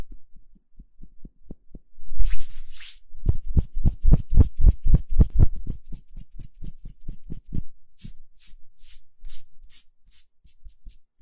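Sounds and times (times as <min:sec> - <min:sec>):
hands rubbing together: 0:02.2 - 0:11.1.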